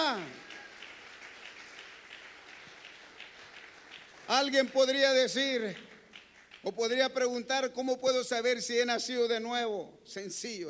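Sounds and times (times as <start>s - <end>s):
audience applause: 0.0s - 6.7s
speech: 4.4s - 5.9s, 6.6s - 10.6s.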